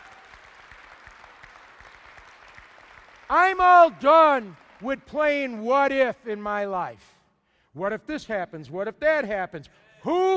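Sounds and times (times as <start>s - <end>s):
audience clapping: 0.0s - 6.0s
speech: 3.3s - 10.3s.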